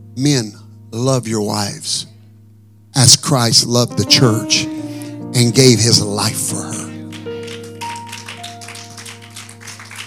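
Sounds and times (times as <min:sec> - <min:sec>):
speech: 0:00.2 - 0:02.1, 0:03.0 - 0:04.7, 0:05.3 - 0:06.8
audience clapping: 0:06.6 - 0:10.0.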